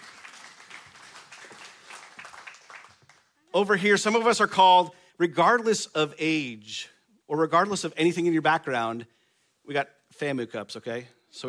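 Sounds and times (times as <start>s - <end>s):
round of applause: 0.0s - 3.5s
speech: 3.6s - 11.4s.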